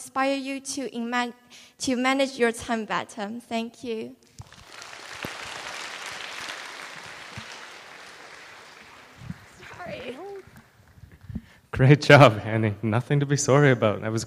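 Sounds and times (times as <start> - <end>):
speech: 0.1 - 4.3, 11.8 - 14.2
audience applause for speakers: 4.4 - 11.0.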